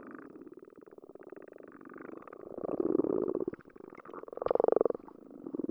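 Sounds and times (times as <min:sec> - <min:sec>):
frogs calling underwater: 0:02.2 - 0:05.6.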